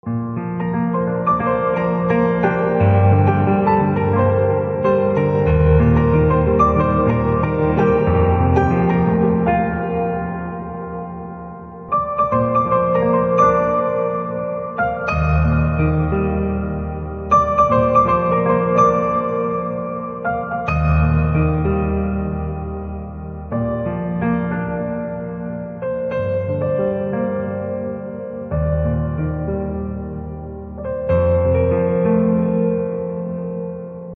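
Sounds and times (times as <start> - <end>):
instrumental piano ringtone: 0.1 - 34.1.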